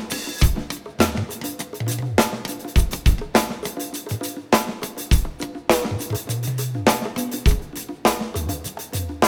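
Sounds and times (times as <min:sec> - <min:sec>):
drums: 0:00.0 - 0:09.2
bass: 0:05.8 - 0:07.0, 0:08.4 - 0:09.1.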